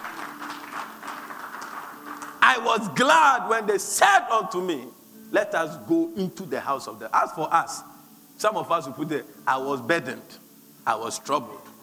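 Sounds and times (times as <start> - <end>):
audience clapping: 0.0 - 2.7
speech: 2.5 - 11.7.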